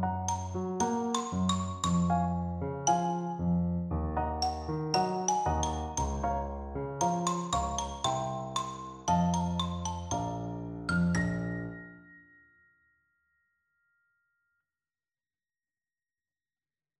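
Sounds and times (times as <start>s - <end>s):
xylophone: 0.1s - 3.6s, 4.3s - 12.8s.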